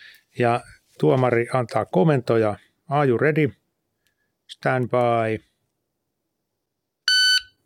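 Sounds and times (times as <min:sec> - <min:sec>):
speech: 0:00.4 - 0:03.6, 0:04.6 - 0:05.5
shooting competition shot timer start beep: 0:07.1 - 0:07.5.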